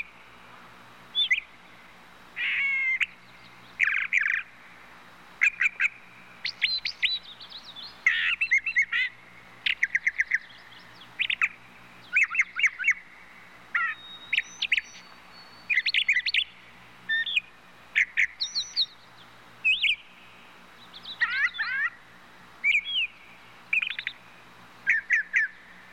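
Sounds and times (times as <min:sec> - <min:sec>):
bird song in short bursts of chirpy warbling notes: 0:01.1 - 0:04.6, 0:05.4 - 0:22.0, 0:22.6 - 0:25.8.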